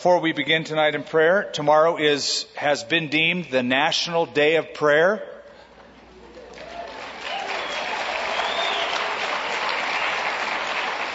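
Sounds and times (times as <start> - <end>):
speech: 0.0 - 5.3
audience applause: 6.4 - 11.1.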